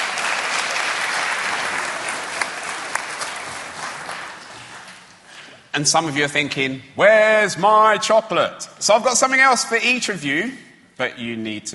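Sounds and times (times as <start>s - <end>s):
applause: 0.0s - 5.0s
speech: 5.8s - 11.7s.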